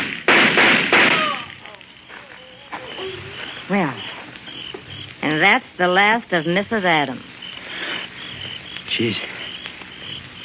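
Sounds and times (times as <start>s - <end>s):
pistol shots in a radio drama: 0.0s - 1.7s
faint tones: 1.1s - 10.4s
speech: 3.7s - 4.2s, 5.4s - 7.3s, 9.0s - 9.3s.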